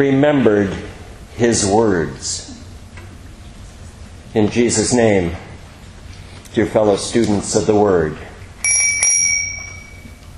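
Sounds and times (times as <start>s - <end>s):
speech: 0.0s - 2.6s, 4.4s - 5.5s, 6.6s - 8.3s
small bell that signals classes or church services: 8.6s - 10.3s.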